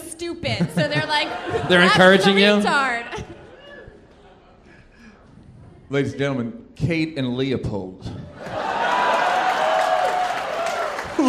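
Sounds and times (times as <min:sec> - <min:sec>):
speech: 0:00.2 - 0:03.3, 0:05.9 - 0:08.6
laughter: 0:00.4 - 0:05.2, 0:11.0 - 0:11.2
audience applause: 0:08.4 - 0:11.2.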